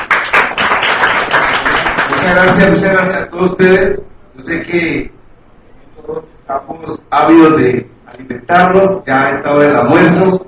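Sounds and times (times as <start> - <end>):
audience applause for a government official at a public event: 0.0 - 2.4
speech: 2.3 - 5.2, 6.0 - 10.4.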